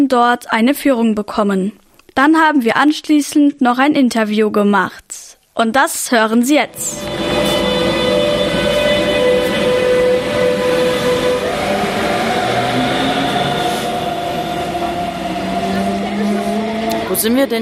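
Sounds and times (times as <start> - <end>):
speech: 0.0 - 7.5, 17.1 - 17.6
train at a railway station: 6.7 - 17.6.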